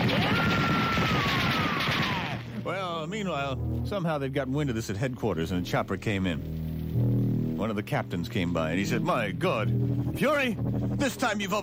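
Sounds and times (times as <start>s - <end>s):
gunfire into the air: 0.0s - 2.6s
speech: 3.0s - 11.6s.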